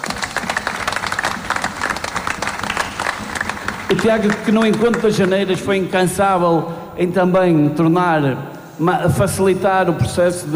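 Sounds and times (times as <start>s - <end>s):
audience applause: 0.0s - 5.7s
speech: 3.9s - 10.5s.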